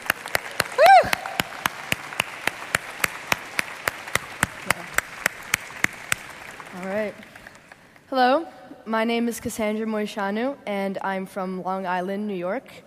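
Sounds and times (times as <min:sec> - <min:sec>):
applause: 0:00.0 - 0:08.1
speech: 0:08.1 - 0:12.8.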